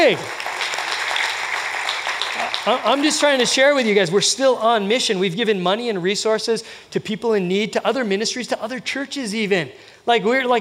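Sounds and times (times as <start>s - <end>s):
speech: 0.0s - 0.4s, 2.6s - 10.6s
audience clapping: 0.0s - 4.0s.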